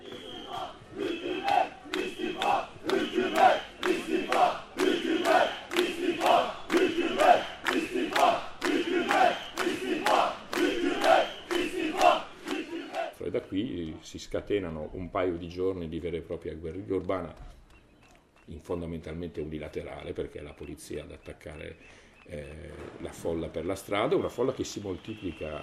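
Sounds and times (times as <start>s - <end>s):
protest crowd chanting in the street: 0.0s - 13.2s
speech: 14.1s - 17.6s, 18.5s - 25.6s.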